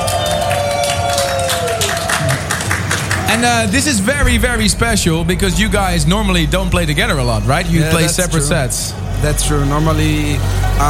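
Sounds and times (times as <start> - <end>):
audience applause: 0.0 - 4.2
crowd cheering: 0.0 - 10.8
speech: 3.3 - 10.8.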